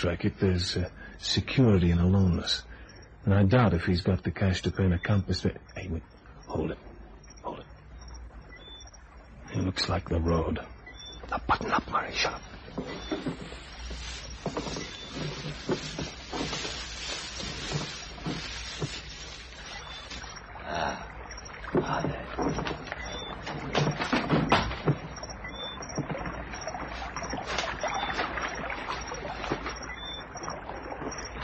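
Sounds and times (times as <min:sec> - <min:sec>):
speech: 0:00.0 - 0:06.9, 0:09.5 - 0:10.7, 0:11.5 - 0:13.6
oars of a rowboat dipping and splashing in water: 0:08.6 - 0:31.4.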